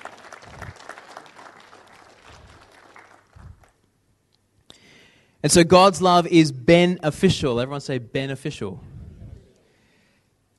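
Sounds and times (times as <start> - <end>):
audience clapping: 0.0 - 3.9
speech: 5.4 - 8.9.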